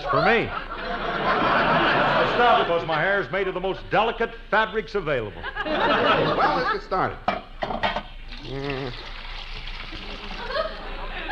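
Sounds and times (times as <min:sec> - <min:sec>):
speech: 0:00.0 - 0:01.0, 0:02.4 - 0:07.7, 0:08.5 - 0:09.1
laughter: 0:00.0 - 0:03.3, 0:05.3 - 0:07.2, 0:10.0 - 0:11.3
dyes poured into boiling water: 0:08.2 - 0:10.8.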